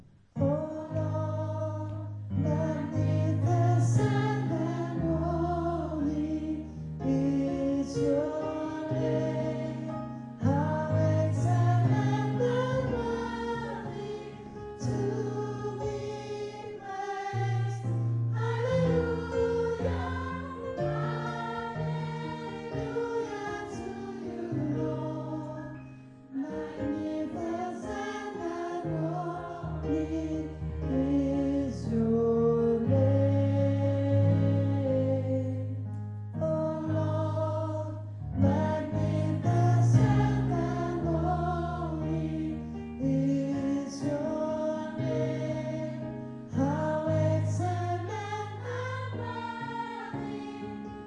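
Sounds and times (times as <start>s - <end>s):
soprano singing: 0.4s - 51.0s.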